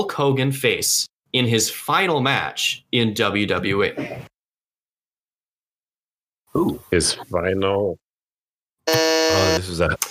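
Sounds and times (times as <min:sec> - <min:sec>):
speech: 0:00.0 - 0:04.3, 0:06.6 - 0:08.0, 0:08.9 - 0:10.0
quiz buzzer: 0:08.8 - 0:09.7.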